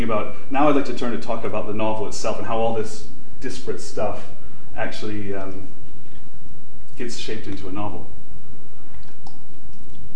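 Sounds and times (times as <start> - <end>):
speech: 0.0 - 5.8, 7.0 - 8.2
person sipping water: 8.8 - 10.1.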